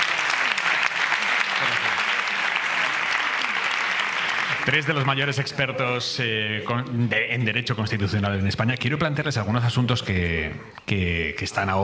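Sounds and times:
audience applause: 0.0s - 5.6s
speech: 4.7s - 11.8s.

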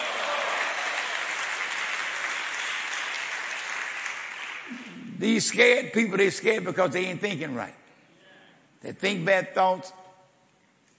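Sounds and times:
audience clapping hands: 0.0s - 5.1s
speech: 5.2s - 7.8s, 8.8s - 10.0s.

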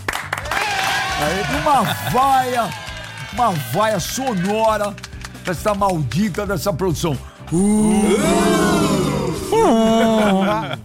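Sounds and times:
audience applause: 0.0s - 6.1s
speech: 1.2s - 8.8s, 9.6s - 10.8s
laughter: 9.4s - 10.8s.

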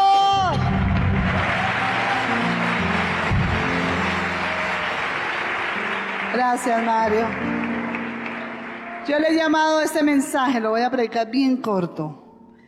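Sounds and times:
audience applause: 0.6s - 9.7s
speech: 6.4s - 7.5s, 9.0s - 12.2s.

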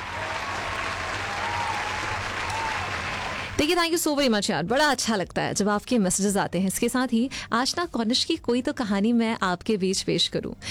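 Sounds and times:
crowd applauding: 0.0s - 3.6s
speech: 3.6s - 10.6s.

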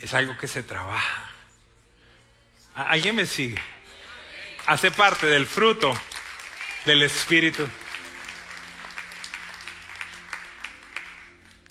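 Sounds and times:
speech: 0.0s - 1.3s, 2.8s - 3.8s, 4.7s - 6.1s, 6.8s - 7.8s
audience applause: 4.6s - 11.6s.

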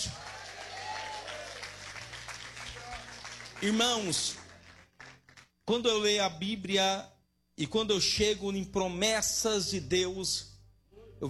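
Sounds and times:
audience clapping: 0.0s - 5.6s
speech: 3.6s - 4.4s, 5.7s - 10.5s.

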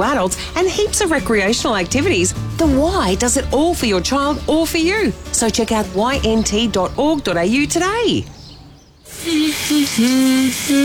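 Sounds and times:
speech: 0.0s - 8.4s, 9.2s - 10.8s
shower spraying water: 9.1s - 10.8s.

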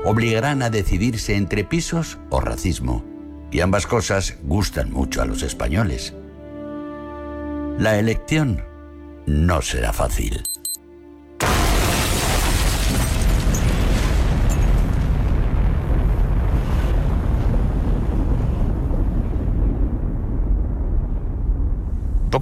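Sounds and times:
speech: 0.1s - 6.2s, 7.8s - 8.7s, 9.3s - 10.5s
explosion rolling into a roaring rumble: 11.4s - 22.4s.

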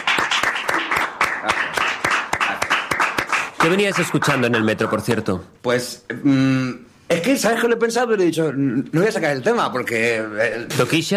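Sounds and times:
applause from a small group: 0.0s - 5.1s
speech: 3.6s - 11.1s.

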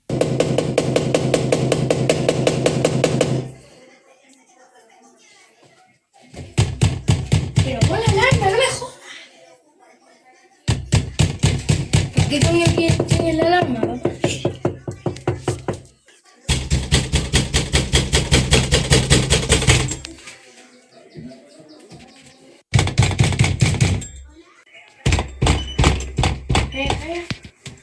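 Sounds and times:
heavy pounding on a door: 0.0s - 3.5s, 6.4s - 8.5s, 10.7s - 15.8s, 16.5s - 20.0s, 22.7s - 24.2s, 25.0s - 27.1s.

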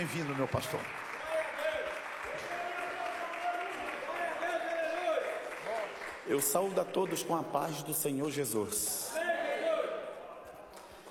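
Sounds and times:
speech: 0.0s - 1.1s, 6.3s - 9.2s
audience applause welcoming a speaker: 0.0s - 7.8s.

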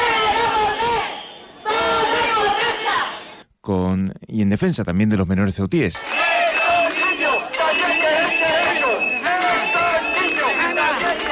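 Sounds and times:
street protest crowd chanting slogans: 0.0s - 3.4s, 6.0s - 11.3s
speech: 3.7s - 6.2s.

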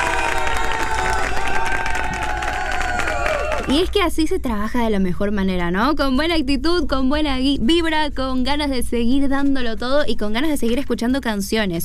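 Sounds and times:
crowd applauding: 0.0s - 3.9s
speech: 3.7s - 11.8s.

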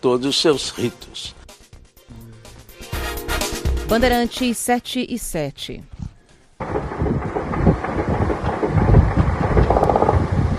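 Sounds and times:
speech: 0.0s - 1.4s, 3.9s - 5.9s
several helicopters roaring: 6.6s - 10.5s.

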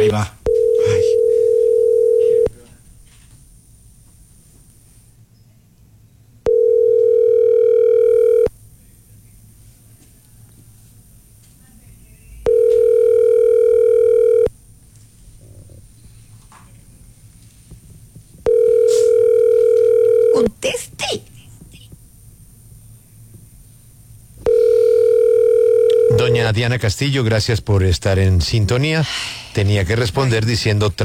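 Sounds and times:
speech: 0.1s - 0.4s, 26.6s - 31.0s
telephone ringback tone on transferred call: 0.5s - 2.5s, 6.5s - 8.5s, 12.4s - 14.5s, 18.4s - 20.5s, 24.4s - 26.4s.

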